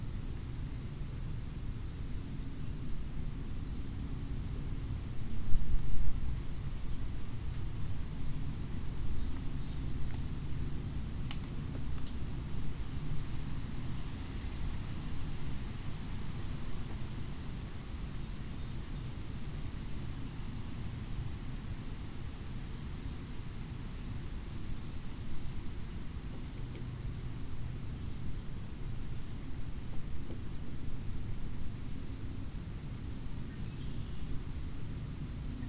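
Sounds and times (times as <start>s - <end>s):
wind among oak and hickory trees: 0.0s - 35.6s.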